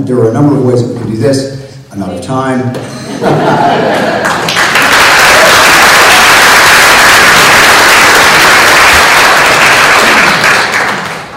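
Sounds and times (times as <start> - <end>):
speech: 0.0 - 4.5
laughter: 2.8 - 4.6
audience applause: 3.8 - 11.3.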